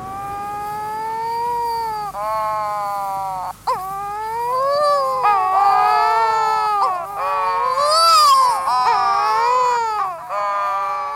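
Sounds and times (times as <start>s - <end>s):
wedge-tailed shearwaters moaning courtship calls: 0.0s - 11.1s.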